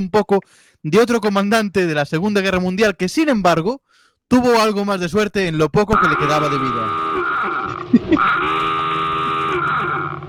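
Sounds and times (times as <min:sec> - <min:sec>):
speech: 0:00.0 - 0:07.1, 0:07.9 - 0:08.6
alarm clock ringing: 0:06.2 - 0:10.1.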